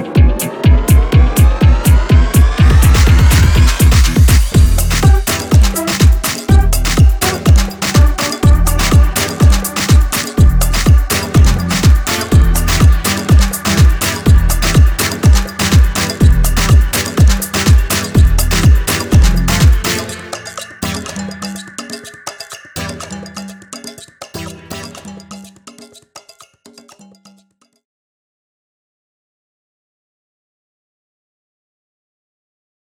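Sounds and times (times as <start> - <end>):
party: 0.3 - 25.6.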